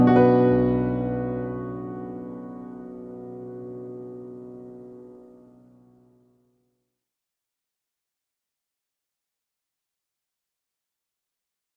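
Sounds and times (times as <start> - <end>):
ocean-themed instrumental music: 0.0 - 5.8.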